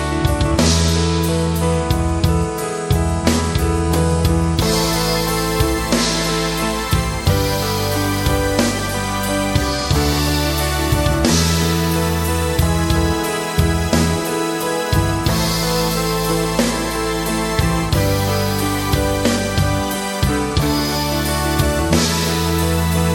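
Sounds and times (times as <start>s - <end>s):
stereo backing track without vocals: 0.0s - 23.1s.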